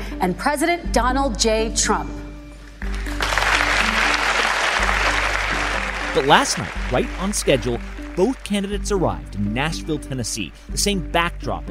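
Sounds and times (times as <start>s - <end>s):
speech: 0.2s - 2.2s, 6.1s - 11.7s
debate hall audience applause in Nashville, Tennessee: 2.9s - 9.6s.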